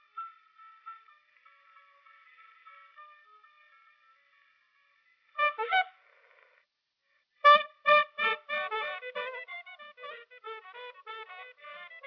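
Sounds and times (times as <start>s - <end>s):
brass instruments: 5.4s - 6.1s, 7.4s - 12.0s.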